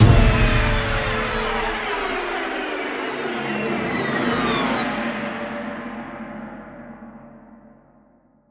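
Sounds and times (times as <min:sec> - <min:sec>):
music stings: 0:00.0 - 0:04.8.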